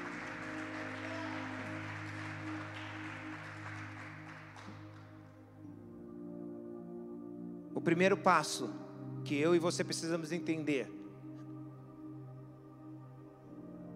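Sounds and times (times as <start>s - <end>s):
audience applause: 0.0s - 5.3s
sustained musical chord: 0.0s - 13.9s
speech: 7.8s - 11.0s.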